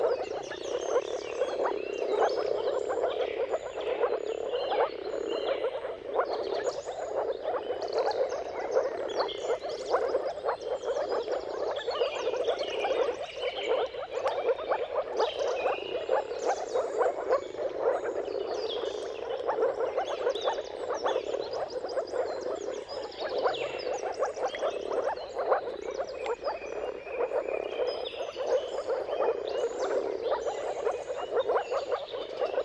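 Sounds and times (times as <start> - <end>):
moor frogs bubbling mating chorus: 0.0 - 32.6.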